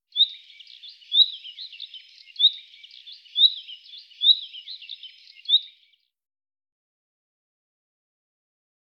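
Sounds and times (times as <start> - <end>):
common nightingale song: 0.0 - 6.1.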